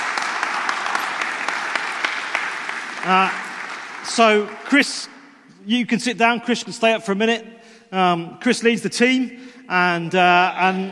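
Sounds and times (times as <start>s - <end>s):
audience clapping: 0.0s - 5.4s
speech: 3.0s - 3.4s, 4.0s - 10.9s.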